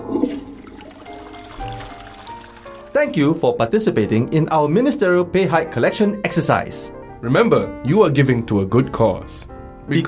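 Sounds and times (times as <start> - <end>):
toilet flush sound effect: 0.0 - 3.4
speech: 3.0 - 10.0.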